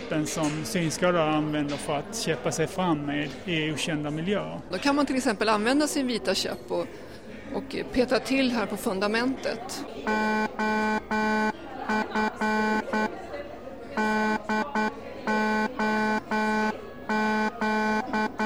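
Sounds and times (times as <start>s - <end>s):
faint murmur: 0.0s - 18.4s
speech: 0.1s - 13.0s
Morse code message beeps: 10.0s - 13.2s, 14.0s - 18.4s.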